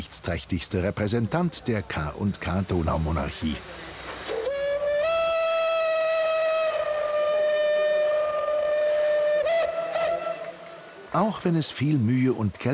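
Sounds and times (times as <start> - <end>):
speech: 0.0 - 3.8, 11.1 - 12.7
historic steam locomotive whistle: 4.2 - 11.0.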